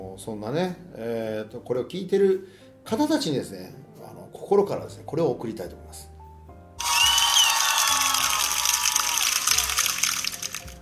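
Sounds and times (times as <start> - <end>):
speech: 0.2 - 6.1
cheering and applause sound effect button: 6.8 - 10.8.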